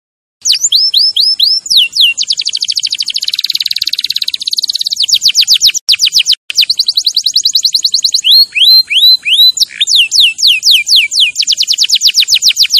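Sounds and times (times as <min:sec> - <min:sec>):
canary song: 0:00.4 - 0:12.7.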